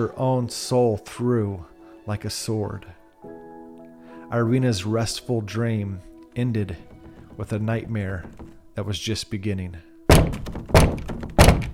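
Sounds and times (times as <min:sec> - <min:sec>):
speech: 0:00.0 - 0:03.0, 0:04.3 - 0:10.5
harsh pounding on front door: 0:06.8 - 0:08.8, 0:10.1 - 0:11.7.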